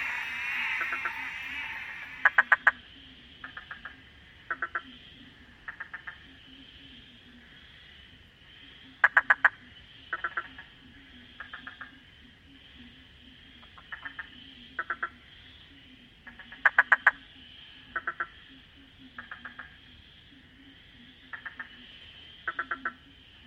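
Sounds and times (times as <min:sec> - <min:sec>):
frog croaking: 0:00.0 - 0:02.6, 0:05.6 - 0:06.2, 0:08.9 - 0:12.1, 0:16.2 - 0:17.3, 0:17.9 - 0:19.8, 0:20.4 - 0:23.1.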